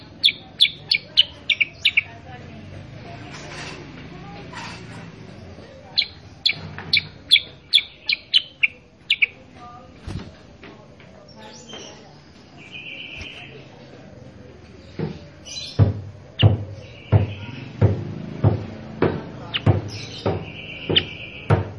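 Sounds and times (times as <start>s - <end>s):
sooty-headed bulbul song: 0.0s - 2.3s, 5.3s - 9.8s, 14.8s - 21.7s.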